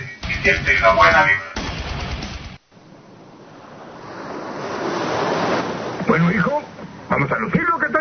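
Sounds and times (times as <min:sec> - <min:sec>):
speech: 0:00.4 - 0:01.5
rushing beach surf with breaking waves: 0:02.7 - 0:07.9.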